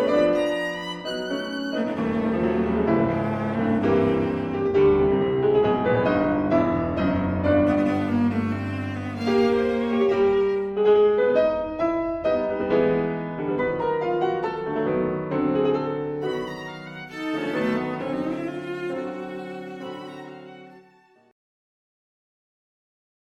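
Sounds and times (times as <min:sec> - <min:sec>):
violin in a piano trio: 0:00.0 - 0:11.2, 0:15.9 - 0:21.4
cello in a piano trio: 0:00.0 - 0:21.3
piano in a piano trio: 0:00.0 - 0:21.4.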